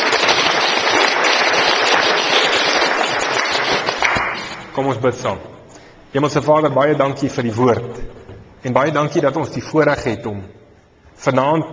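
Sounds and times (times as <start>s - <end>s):
audience applause: 0.0s - 4.7s
speech: 4.8s - 5.5s, 6.1s - 10.6s, 11.2s - 11.7s.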